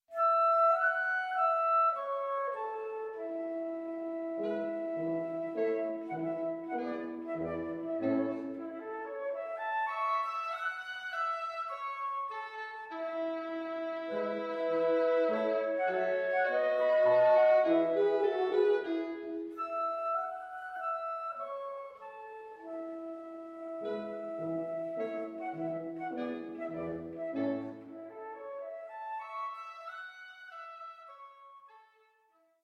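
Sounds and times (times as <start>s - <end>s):
quintet playing: 0.1s - 32.4s.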